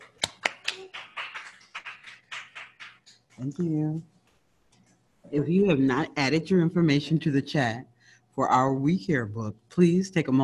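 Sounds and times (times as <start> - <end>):
few people clapping: 0.0 - 3.6
speech: 3.4 - 4.1, 5.3 - 10.4.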